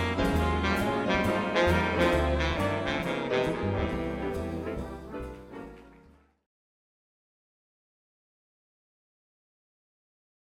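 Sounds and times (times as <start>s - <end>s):
baritone sample: 0.0s - 5.7s.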